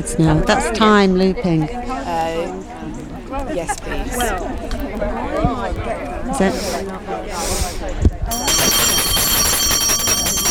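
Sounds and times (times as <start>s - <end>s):
speech: 0.0s - 2.7s, 3.5s - 8.4s
bell ringing: 8.3s - 10.4s.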